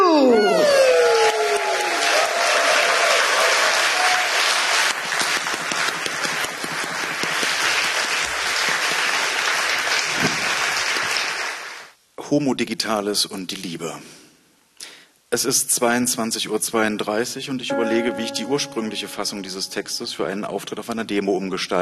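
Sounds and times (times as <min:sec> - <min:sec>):
audience applause: 0:00.6 - 0:11.9
speech: 0:12.4 - 0:14.2, 0:15.3 - 0:21.8.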